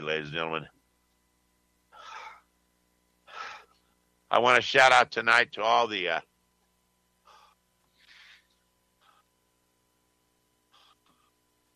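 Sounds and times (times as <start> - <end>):
speech: 0.1 - 0.8, 4.3 - 6.3
person with congested nostrils sniffing: 3.3 - 3.7, 7.3 - 8.4.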